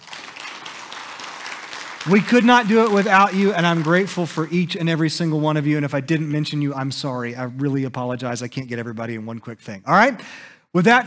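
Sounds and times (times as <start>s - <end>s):
audience applause: 0.0s - 4.6s
speech: 2.0s - 11.0s.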